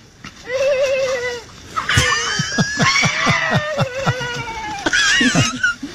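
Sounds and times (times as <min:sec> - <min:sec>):
elephant giggling: 0:01.8 - 0:05.9.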